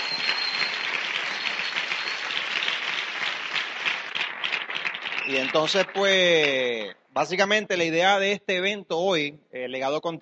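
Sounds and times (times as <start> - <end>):
audience applause: 0.0 - 6.6
speech: 5.3 - 10.1.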